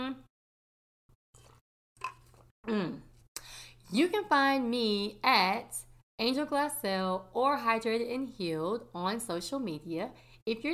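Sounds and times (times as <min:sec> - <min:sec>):
person sipping a drink: 0:01.4 - 0:02.5
speech: 0:03.9 - 0:10.7.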